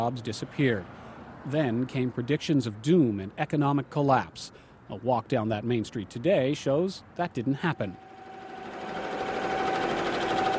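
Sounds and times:
speech: 0.0s - 8.1s
embroidery machines stitching sport crests onto jackets and T-shirts: 7.6s - 10.5s.

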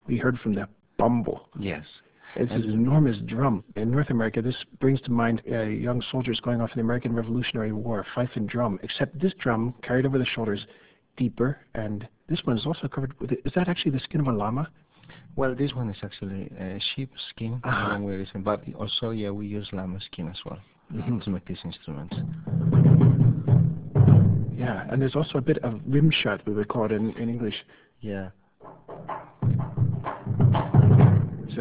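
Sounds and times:
people in discussion: 0.0s - 22.4s, 24.6s - 28.4s
bombo bass drum: 22.1s - 25.3s, 28.6s - 31.5s.

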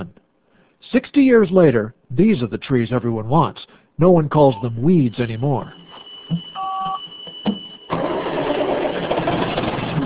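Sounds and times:
speech: 0.9s - 6.5s
short electronic beep: 4.6s - 7.9s
logging machine engine roaring: 7.9s - 10.0s.

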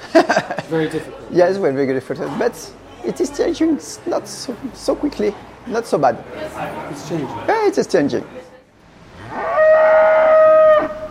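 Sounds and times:
laughter: 0.0s - 1.2s
speech: 0.2s - 8.4s
Holstein cow mooing in a huge barn: 9.1s - 11.0s.

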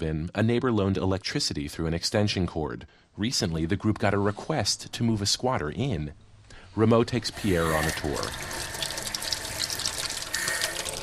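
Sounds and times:
speech: 0.0s - 6.2s, 6.8s - 8.7s
tap water running in a vacant house: 7.1s - 11.0s.

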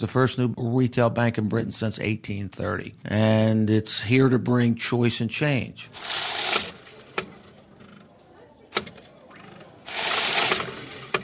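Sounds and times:
speech: 0.0s - 6.2s
coin-counting machine whirring and rattling: 6.0s - 7.0s, 9.9s - 11.2s.

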